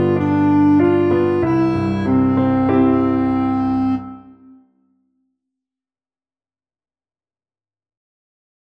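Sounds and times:
Welsh melody: 0:00.0 - 0:04.6.

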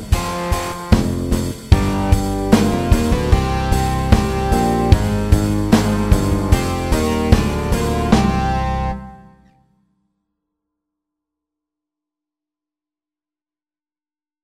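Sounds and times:
slow rock beat: 0:00.0 - 0:09.4.

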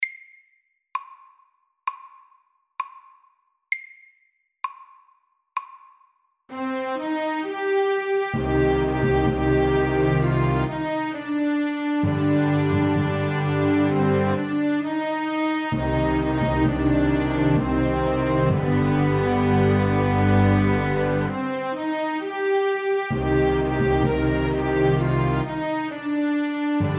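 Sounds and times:
lament music: 0:06.5 - 0:26.9.

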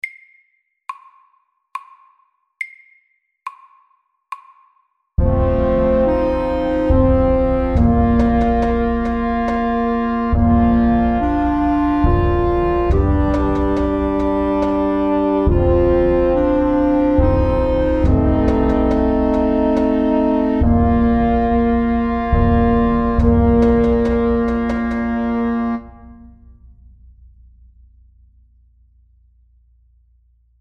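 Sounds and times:
slow dance tune: 0:05.2 - 0:26.1.

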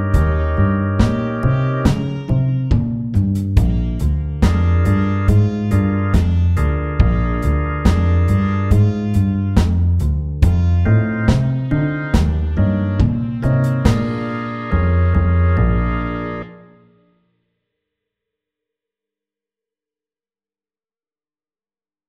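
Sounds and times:
slow walking bass line: 0:00.0 - 0:16.6.

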